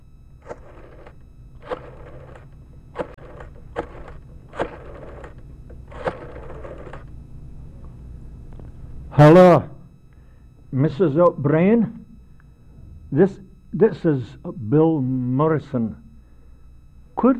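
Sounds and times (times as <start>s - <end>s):
dialing a telephone number: 0.0s - 9.0s
speech: 9.2s - 9.7s, 10.7s - 12.0s, 13.1s - 16.0s, 17.2s - 17.3s.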